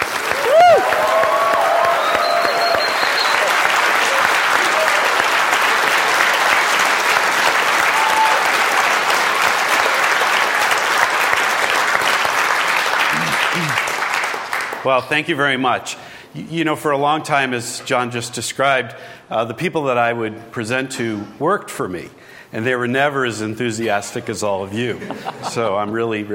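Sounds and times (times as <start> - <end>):
audience applause welcoming a speaker at a business event in Santa Barbara: 0.0 - 14.8
speech: 14.9 - 26.3
laughter: 24.9 - 26.0.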